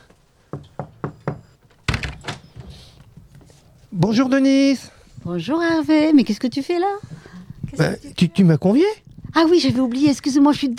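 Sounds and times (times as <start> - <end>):
knocking on a door: 0.5 - 2.4
speech: 3.9 - 7.1, 7.8 - 10.7.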